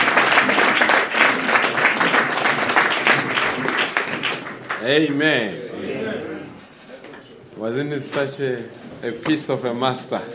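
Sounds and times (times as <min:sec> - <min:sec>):
audience applause: 0:00.0 - 0:05.2
speech: 0:04.8 - 0:05.6, 0:07.6 - 0:10.3.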